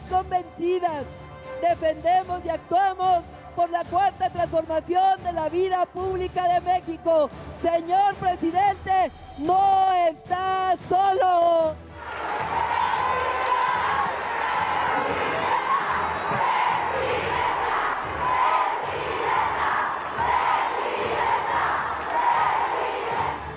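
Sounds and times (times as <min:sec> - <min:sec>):
speech: 0:00.2 - 0:11.8
crowd cheering for the president: 0:11.9 - 0:23.5.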